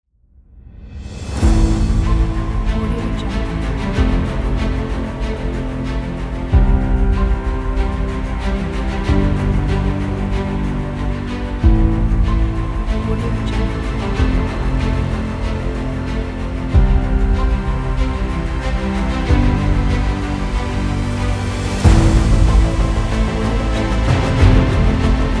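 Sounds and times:
epic trailer music: 0.8 - 25.3.

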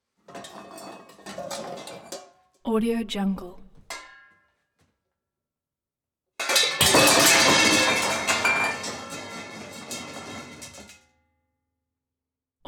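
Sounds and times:
pot rack falling: 0.2 - 2.4, 3.8 - 4.4, 6.4 - 11.0.

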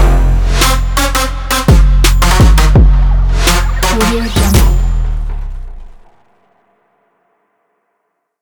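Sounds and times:
energetic trap hip hop logo: 0.0 - 6.2.

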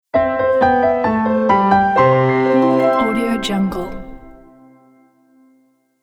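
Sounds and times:
magic piano logo sound: 0.6 - 5.0.

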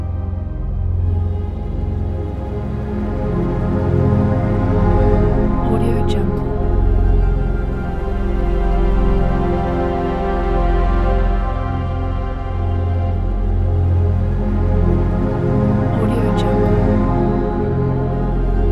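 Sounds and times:
orchestral ambient soundscape: 0.0 - 18.7.

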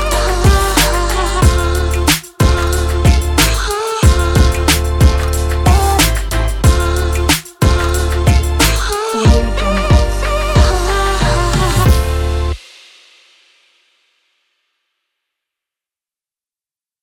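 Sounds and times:
hip hop music: 0.0 - 13.0.

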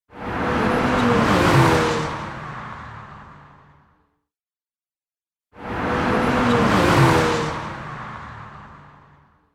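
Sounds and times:
turbo car passing fast: 0.1 - 3.4, 5.6 - 9.0.

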